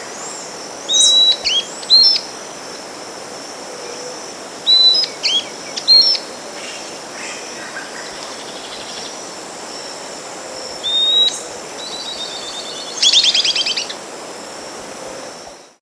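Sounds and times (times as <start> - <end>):
steady hiss of background noise: 0.0 - 15.8
bird whistles and trill: 0.9 - 2.2, 4.7 - 6.2, 10.8 - 14.0.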